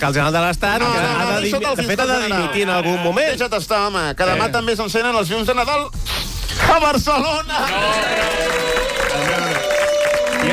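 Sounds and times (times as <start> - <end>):
speech: 0.0 - 9.5
audience applauding: 7.5 - 10.5.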